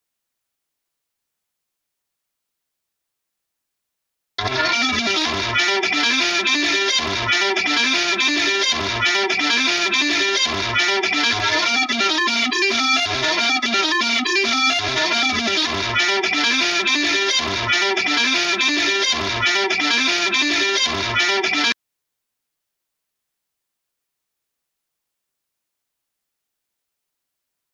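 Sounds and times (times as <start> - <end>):
lead melody: 4.5 - 21.6.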